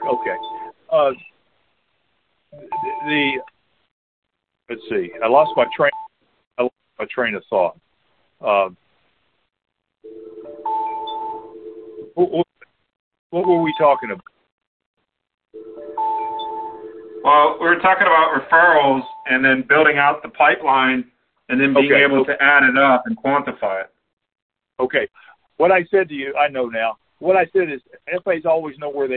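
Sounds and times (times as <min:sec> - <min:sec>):
phone beep of an incoming call: 0:00.0 - 0:00.8, 0:02.6 - 0:03.5, 0:10.1 - 0:11.6, 0:15.6 - 0:17.2
speech: 0:00.2 - 0:01.3, 0:02.5 - 0:03.5, 0:04.7 - 0:06.0, 0:06.6 - 0:07.8, 0:08.4 - 0:08.8, 0:12.2 - 0:12.5, 0:13.3 - 0:14.3, 0:17.2 - 0:23.9, 0:24.8 - 0:29.1.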